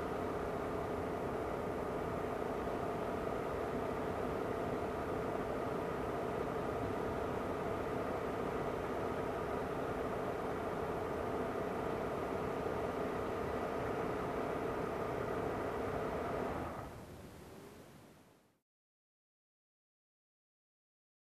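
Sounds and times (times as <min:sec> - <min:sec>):
distant SUV engine ignition: 0:00.0 - 0:17.0.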